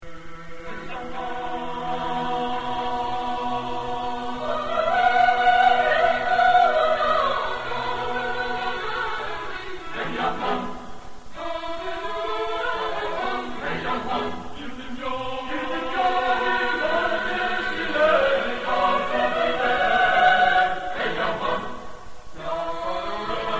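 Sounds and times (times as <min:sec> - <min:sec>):
chamber choir singing: 0:00.1 - 0:23.5.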